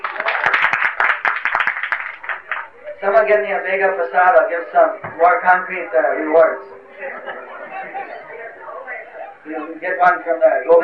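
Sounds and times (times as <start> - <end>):
audience applause: 0.0 - 2.9
speech: 3.0 - 7.4, 9.5 - 10.8
laughter: 6.6 - 9.8.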